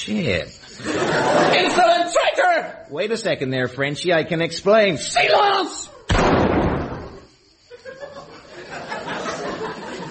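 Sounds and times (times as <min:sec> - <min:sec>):
speech: 0:00.0 - 0:05.9
laughter: 0:00.7 - 0:02.1, 0:07.7 - 0:10.0
gunshot in a comedic film scene: 0:06.1 - 0:07.2.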